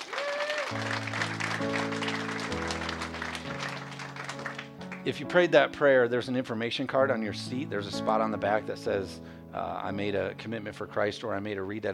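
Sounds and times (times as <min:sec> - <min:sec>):
audience applause: 0:00.0 - 0:05.0
sustained keyboard chords: 0:00.7 - 0:11.9
speech: 0:05.0 - 0:11.9.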